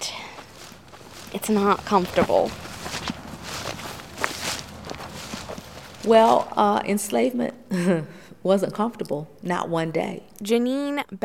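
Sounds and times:
footsteps of several people walking: 0.0s - 6.8s
speech: 1.3s - 2.6s, 6.0s - 11.2s.

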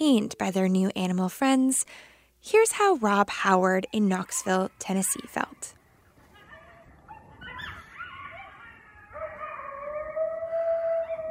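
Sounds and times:
speech: 0.0s - 5.8s
chorus of coyotes howling and yipping: 3.4s - 11.2s.

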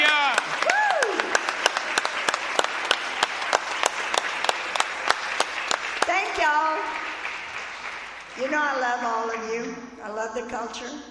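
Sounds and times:
audience applause: 0.0s - 9.3s
speech: 10.3s - 11.0s.

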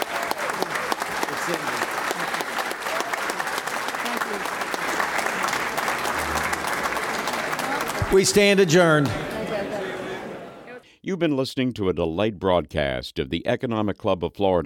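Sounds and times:
audience clapping: 0.0s - 9.9s
speech: 1.5s - 1.9s, 8.1s - 9.3s, 11.1s - 14.6s.

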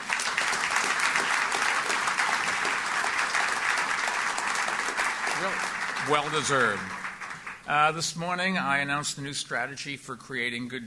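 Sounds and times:
audience applause: 0.0s - 8.5s
speech: 5.4s - 7.0s, 7.7s - 10.8s.

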